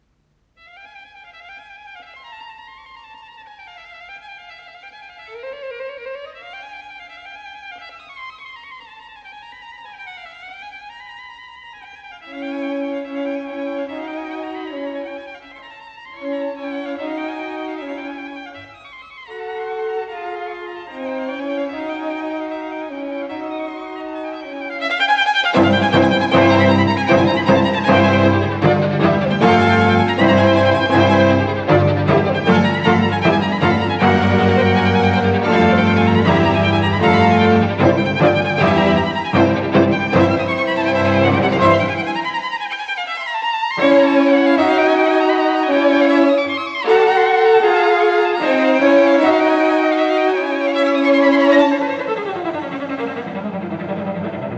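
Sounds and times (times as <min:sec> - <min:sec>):
string quartet piece in F minor: 0:12.3 - 0:18.7, 0:19.3 - 0:54.5.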